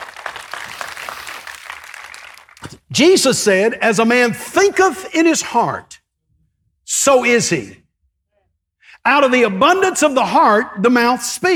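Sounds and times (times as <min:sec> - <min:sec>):
audience clapping: 0:00.0 - 0:02.9
speech: 0:02.7 - 0:06.0, 0:07.0 - 0:07.8, 0:09.0 - 0:11.5.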